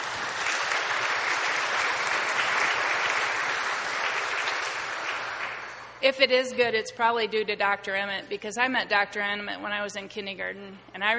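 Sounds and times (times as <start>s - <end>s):
audience clapping to welcome missionaries working in Haiti: 0.0s - 6.0s
speech: 6.0s - 11.1s.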